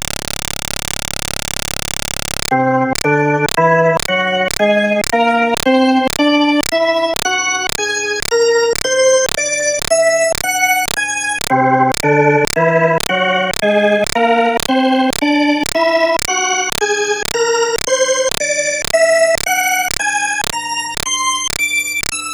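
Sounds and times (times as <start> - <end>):
Hammond B3 organ: 2.5 - 22.0.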